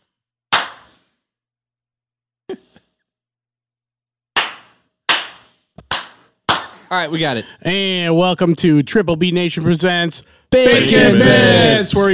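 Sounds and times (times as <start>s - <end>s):
hand clap: 0.5s - 1.1s, 4.4s - 6.9s
speech: 6.9s - 12.1s.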